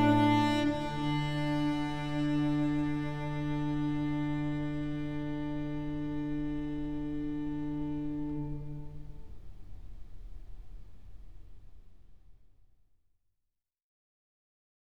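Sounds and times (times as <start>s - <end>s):
cello concerto in F: 0.0s - 10.6s.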